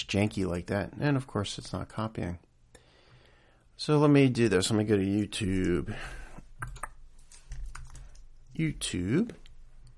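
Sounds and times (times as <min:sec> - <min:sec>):
speech: 0:00.0 - 0:02.5, 0:03.8 - 0:06.8, 0:08.6 - 0:09.4
faint hiss: 0:00.0 - 0:09.9
typing on a computer keyboard while entering a search on YouTube: 0:06.6 - 0:08.3.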